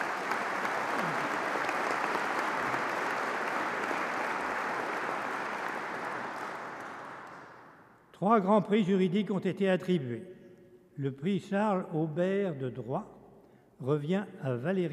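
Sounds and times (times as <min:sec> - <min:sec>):
audience applause: 0:00.0 - 0:07.8
speech: 0:08.2 - 0:10.3, 0:11.0 - 0:13.2, 0:13.8 - 0:14.9.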